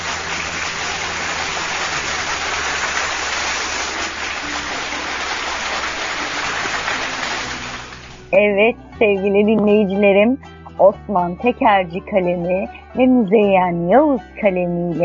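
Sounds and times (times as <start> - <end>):
applause: 0.0 - 8.3
speech: 8.3 - 15.0.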